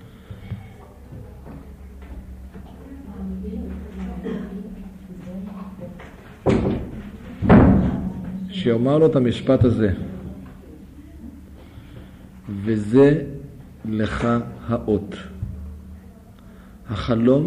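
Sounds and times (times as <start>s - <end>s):
murmuring voices: 0.0s - 16.9s
door slamming: 6.4s - 8.6s
speech: 8.6s - 10.1s, 12.7s - 15.3s, 16.9s - 17.4s.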